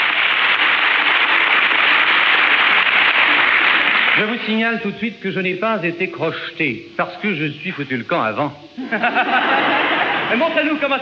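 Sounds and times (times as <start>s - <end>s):
audience applause: 0.0s - 4.4s
speech: 4.2s - 11.0s
laughter: 8.8s - 10.8s.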